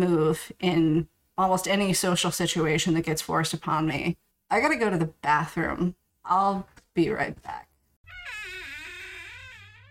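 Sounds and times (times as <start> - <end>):
speech: 0.0 - 7.7
squeaky bathroom door: 8.0 - 9.8.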